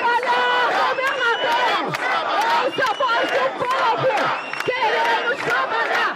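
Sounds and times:
protesters shouting slogans: 0:00.0 - 0:06.1.

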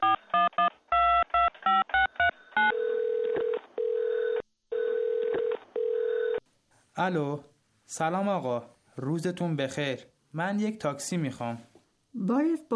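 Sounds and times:
telephone ringing tone: 0:00.0 - 0:06.4
speech: 0:07.0 - 0:12.7.

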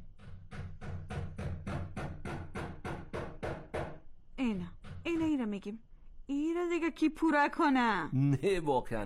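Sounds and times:
hammering a nail into a wall: 0:00.0 - 0:04.1
speech: 0:04.4 - 0:09.0.

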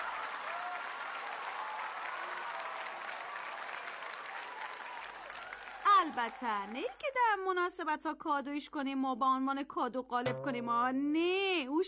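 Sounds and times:
audience applause: 0:00.0 - 0:06.9
speech: 0:06.0 - 0:11.8.

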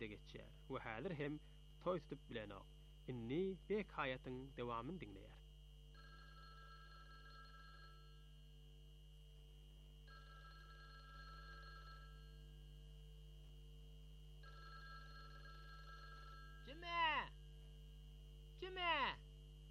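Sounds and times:
speech: 0:00.0 - 0:05.4, 0:18.6 - 0:19.2
telephone ringing with electronic trilling: 0:05.9 - 0:08.4, 0:10.0 - 0:12.5, 0:14.4 - 0:16.8.

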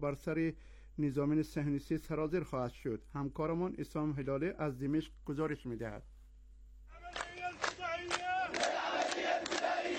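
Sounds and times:
speech: 0:00.0 - 0:06.1
crowd chanting at a rally: 0:07.4 - 0:09.9.

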